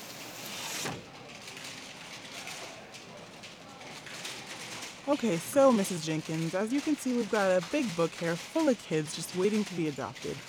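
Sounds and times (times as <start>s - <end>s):
window sliding shut: 0.0s - 1.1s
speech: 5.1s - 10.4s.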